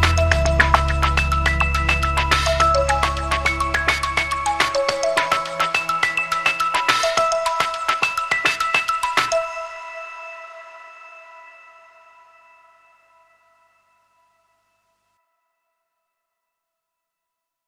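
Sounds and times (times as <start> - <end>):
hi-tech minimal electronic music: 0.0 - 14.1.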